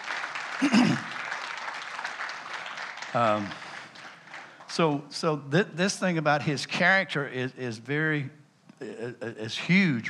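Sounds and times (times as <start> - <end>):
audience applauding: 0.0 - 5.1
speech: 0.6 - 1.0, 3.1 - 3.6, 4.8 - 10.0.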